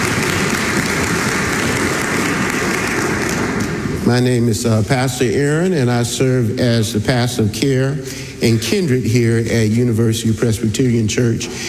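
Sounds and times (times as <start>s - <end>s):
audience clapping hands in praise: 0.0s - 4.1s
speech: 4.1s - 11.6s.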